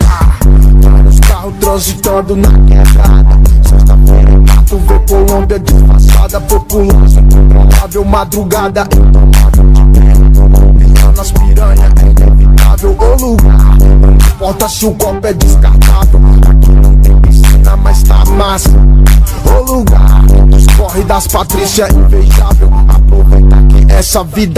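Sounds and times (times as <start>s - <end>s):
funk bass: 0.0s - 24.5s.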